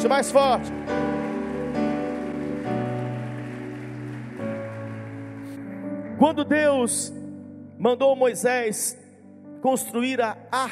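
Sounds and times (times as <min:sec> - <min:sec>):
speech: 0:00.0 - 0:01.1, 0:06.2 - 0:07.2, 0:07.8 - 0:09.0, 0:09.6 - 0:10.7
audience applauding: 0:00.0 - 0:05.8.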